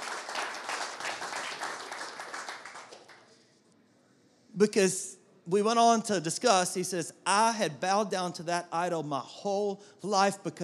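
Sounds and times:
crowd applause: 0.0s - 3.3s
speech: 4.6s - 10.6s.

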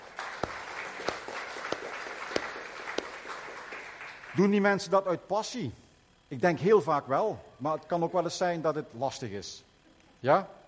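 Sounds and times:
audience clapping: 0.0s - 4.6s
speech: 4.4s - 10.6s.

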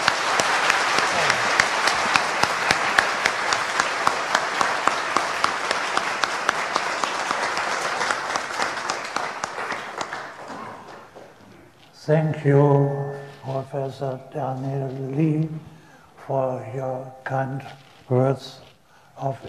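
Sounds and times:
audience applause welcoming a lecturer at a public lecture: 0.0s - 11.8s
speech: 12.1s - 15.7s, 16.3s - 19.4s.

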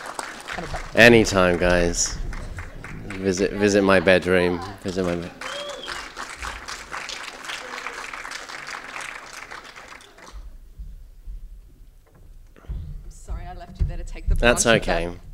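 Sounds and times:
crowd round of applause: 0.0s - 10.6s
low thumps: 0.5s - 5.0s, 10.4s - 15.3s
speech: 0.6s - 2.2s, 3.2s - 5.6s, 14.4s - 15.3s.

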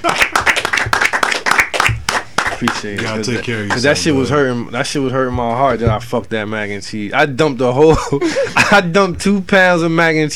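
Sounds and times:
hand clapping: 0.0s - 3.9s
speech: 2.6s - 10.3s
laughter: 7.8s - 9.0s.

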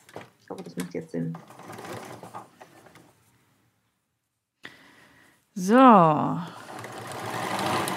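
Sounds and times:
sewing machine stitching fabric: 1.2s - 3.1s, 6.4s - 7.9s
speech: 5.6s - 6.6s.

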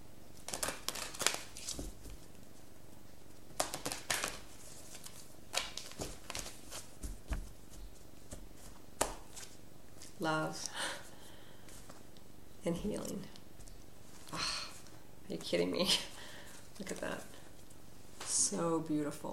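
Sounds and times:
cards being drawn from a numerology card deck: 0.4s - 2.3s, 3.5s - 7.4s
speech: 10.2s - 10.9s, 12.6s - 13.4s, 15.3s - 16.1s, 16.8s - 17.3s, 18.5s - 19.3s.

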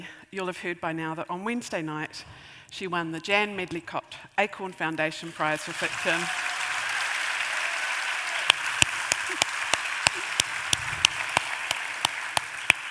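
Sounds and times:
speech: 0.0s - 6.6s
audience clapping to welcome author Catherine Chidgey at a book event: 5.2s - 12.8s.

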